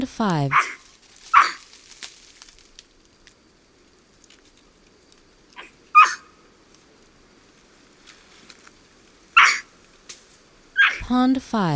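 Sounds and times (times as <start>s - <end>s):
speech: 0.0s - 0.8s, 11.1s - 11.7s
white-throated capuchin raspy barks: 0.5s - 1.6s, 5.6s - 6.3s, 9.4s - 9.7s, 10.8s - 11.0s.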